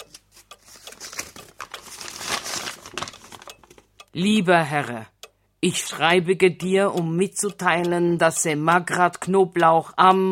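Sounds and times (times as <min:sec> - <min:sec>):
paper letter being handled: 0:00.0 - 0:03.9
speech: 0:04.2 - 0:10.2.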